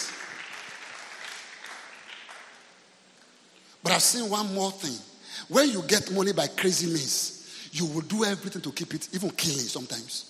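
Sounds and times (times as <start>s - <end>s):
audience clapping: 0.0s - 3.1s
speech: 3.8s - 10.2s.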